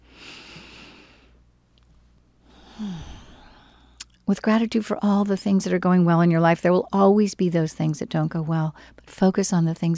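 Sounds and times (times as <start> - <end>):
deep breath: 0.0 - 1.4, 2.4 - 4.0
speech: 4.3 - 9.9.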